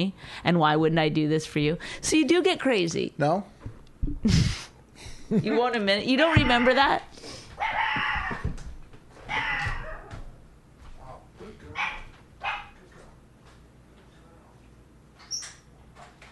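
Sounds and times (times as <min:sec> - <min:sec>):
speech: 0:00.0 - 0:04.7, 0:05.3 - 0:07.8
dog barking: 0:07.6 - 0:08.3, 0:11.8 - 0:12.8.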